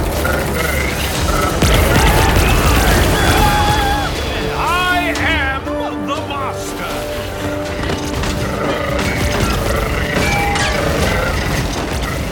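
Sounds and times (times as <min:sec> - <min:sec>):
gunfire and booming blasts in a science-fiction audio drama battle: 0:00.0 - 0:04.6, 0:07.4 - 0:12.3
people shouting: 0:01.6 - 0:06.5, 0:10.0 - 0:11.4.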